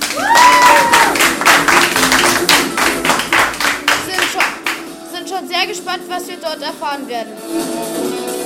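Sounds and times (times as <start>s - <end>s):
studio audience applause: 0.0s - 4.8s
speech: 5.8s - 8.3s.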